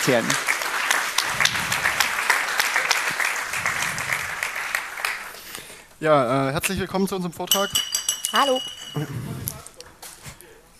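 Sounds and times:
speech: 0.0 - 0.5, 6.0 - 9.6
audience applause: 0.0 - 5.4.

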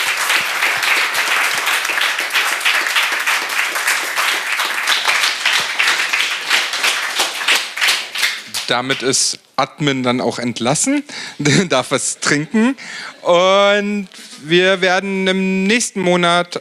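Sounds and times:
audience applause: 0.0 - 9.0
speech: 8.7 - 16.6.

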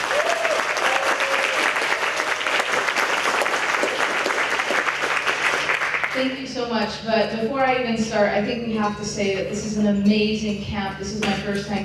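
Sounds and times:
person whooping: 0.0 - 2.2
audience applause: 0.0 - 6.2
speech: 6.2 - 11.8.

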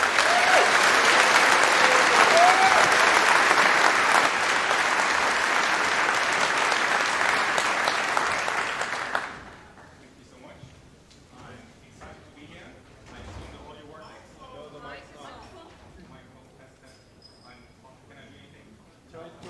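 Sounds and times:
audience applause: 0.0 - 9.9.

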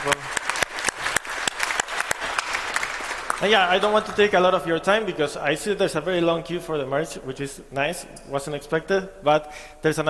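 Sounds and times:
audience at a Godot conference clapping: 0.0 - 4.7
speech: 3.4 - 10.0.

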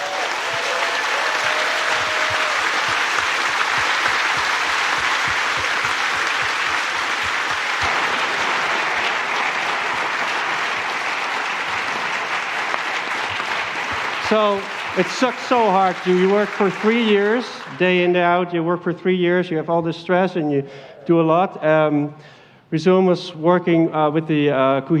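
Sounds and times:
loud audience applause: 0.0 - 18.5
speech: 14.3 - 24.9.

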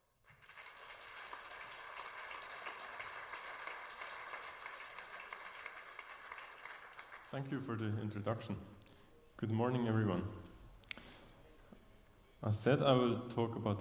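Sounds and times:
crowd applauding: 0.2 - 7.6
speech: 7.3 - 8.8, 9.4 - 10.5, 12.4 - 13.8.

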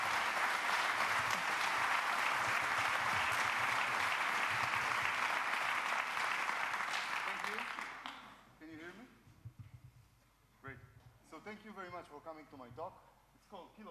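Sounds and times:
audience applause: 0.0 - 8.3
speech: 12.0 - 13.9.

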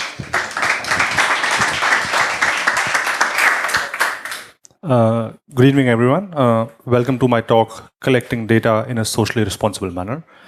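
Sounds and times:
crowd applause: 0.0 - 4.5
speech: 4.8 - 10.4.

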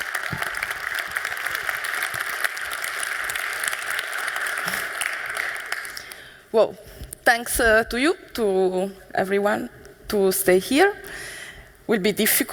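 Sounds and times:
audience applause: 0.0 - 6.3
speech: 6.5 - 11.3, 11.9 - 12.5.

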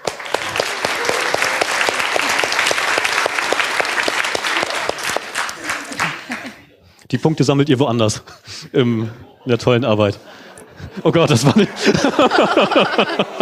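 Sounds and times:
audience applause: 0.0 - 6.6, 11.0 - 13.3
laughter: 0.0 - 13.3
speech: 7.1 - 10.4, 11.0 - 13.3.

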